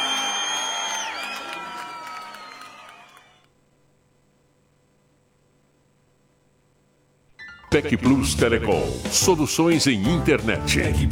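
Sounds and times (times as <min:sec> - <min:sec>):
applause: 0:00.0 - 0:03.5
speech: 0:07.7 - 0:11.1.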